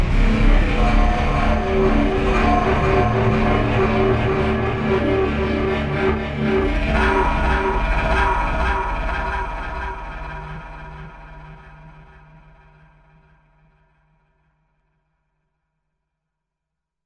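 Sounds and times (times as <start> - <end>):
horror film music: 0.0 - 13.2.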